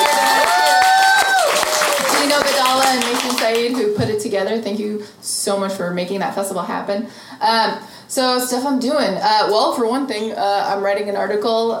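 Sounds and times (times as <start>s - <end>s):
crowd roar: 0.0s - 2.5s
audience clapping and cheering to honour a community: 0.0s - 3.9s
speech: 4.3s - 11.7s.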